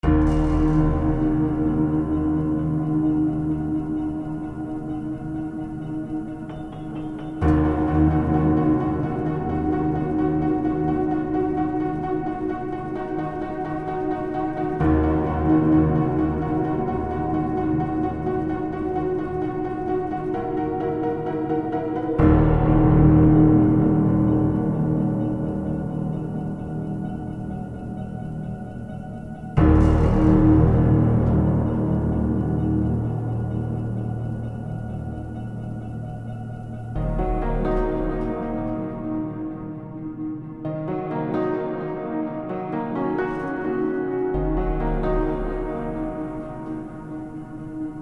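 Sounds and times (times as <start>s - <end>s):
radioactive pianos from Chernobyl: 0.0s - 47.9s.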